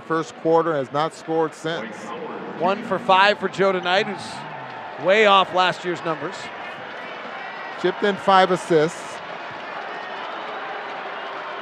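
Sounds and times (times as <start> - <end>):
speech: 0.1 - 6.6, 7.8 - 9.1
arena crowd clearing out: 1.7 - 7.4.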